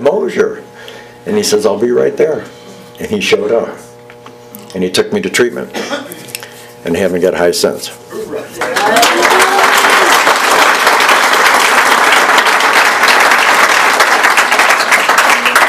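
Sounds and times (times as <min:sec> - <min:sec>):
speech: 0:00.1 - 0:03.8, 0:04.7 - 0:06.2, 0:06.8 - 0:09.6
audience applause: 0:08.6 - 0:15.6.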